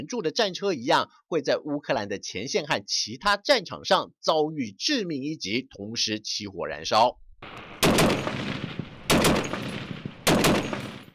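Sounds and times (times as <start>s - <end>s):
speech: 0.0s - 8.2s
Western-supplied .50-calibre heavy machine gun firing at a training base in Kyiv: 7.4s - 11.1s.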